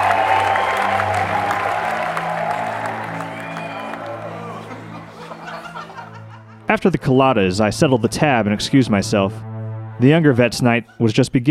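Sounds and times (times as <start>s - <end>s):
crowds cheering and applauding: 0.0s - 6.4s
laughter: 2.4s - 9.2s, 10.0s - 11.3s
speech: 6.8s - 11.4s.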